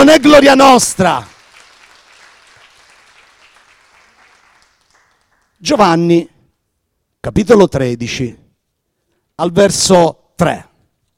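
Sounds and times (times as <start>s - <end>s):
speech: 0.0s - 1.3s, 5.6s - 6.3s, 7.2s - 8.4s, 9.4s - 10.7s
crowd clapping: 0.3s - 6.1s.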